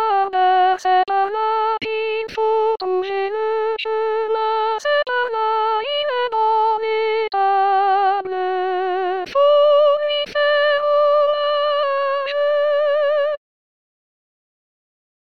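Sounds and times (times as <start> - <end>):
soprano voice: 0.0 - 13.4.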